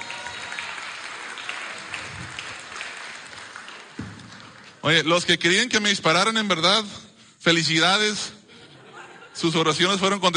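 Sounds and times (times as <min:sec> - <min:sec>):
audience applause: 0:00.0 - 0:04.9
speech: 0:04.8 - 0:08.4, 0:09.4 - 0:10.3
laughter: 0:08.5 - 0:09.8.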